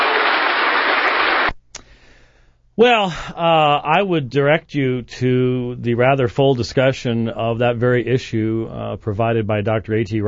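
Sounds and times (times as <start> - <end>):
audience applause for two debaters at a debate: 0.0 - 1.5
faint click: 1.5 - 1.9
speech: 2.8 - 10.2.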